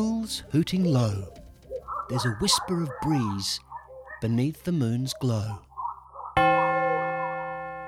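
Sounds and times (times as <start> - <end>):
speech: 0.0 - 1.4, 2.1 - 5.7
clock chime ringing: 6.4 - 7.8.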